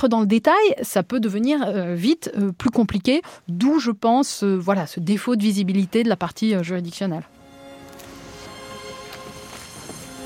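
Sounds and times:
speech: 0:00.0 - 0:07.4
footsteps climbing the grand ceremonial staircase of a public building: 0:08.4 - 0:10.2.

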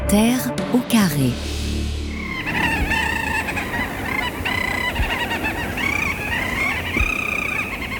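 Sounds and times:
speech: 0:00.1 - 0:01.5
chorus of honking geese recorded in Svalbard: 0:02.1 - 0:07.9.

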